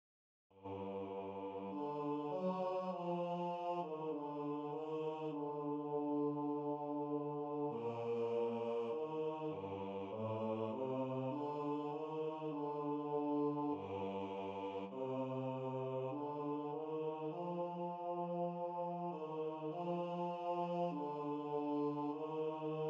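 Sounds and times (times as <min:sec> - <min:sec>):
choir singing: 0:00.6 - 0:22.8.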